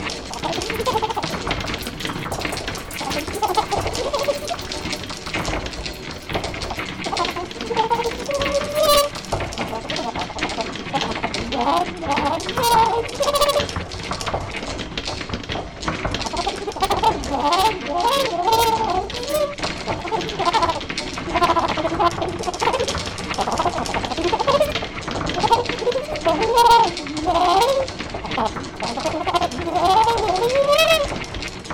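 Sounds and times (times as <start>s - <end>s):
trumpet: 0.1s - 13.7s, 16.3s - 24.7s, 25.3s - 31.2s
electronics: 0.3s - 10.7s.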